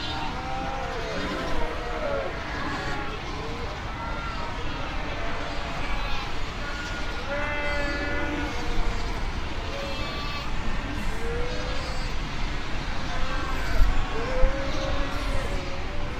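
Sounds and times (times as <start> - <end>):
fur seal colony bleating and moaning calls: 0.0 - 16.1.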